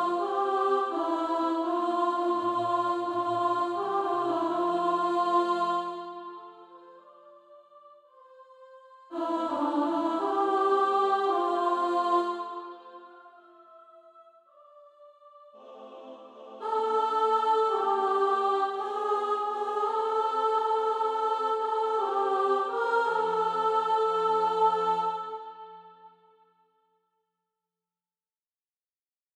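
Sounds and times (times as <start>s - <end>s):
alto voice singing SATB practice music: 0.0s - 7.3s, 8.5s - 14.1s, 15.6s - 26.2s.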